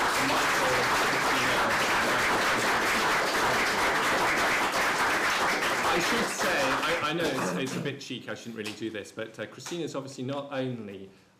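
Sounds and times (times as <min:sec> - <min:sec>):
audience applause: 0:00.0 - 0:07.8
speech: 0:06.0 - 0:11.3.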